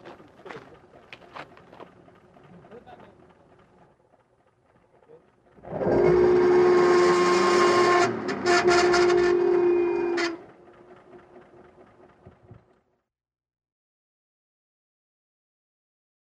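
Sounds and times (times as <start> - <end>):
wheels spinning and slipping: 0.0 - 12.8.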